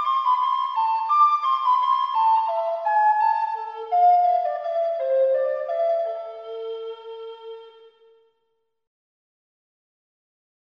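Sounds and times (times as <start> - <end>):
fast fantasy music: 0.0 - 6.3.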